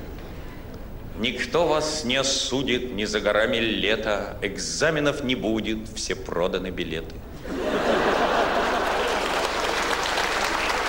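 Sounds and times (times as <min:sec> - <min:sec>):
speech: 0:01.2 - 0:07.8
laughter: 0:07.4 - 0:09.8
audience applause: 0:08.0 - 0:10.8.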